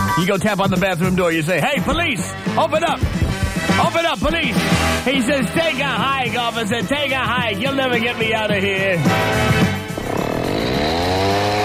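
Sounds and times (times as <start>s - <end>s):
speech: 0.2s - 3.2s, 3.8s - 9.8s
chainsaw running: 9.2s - 11.6s.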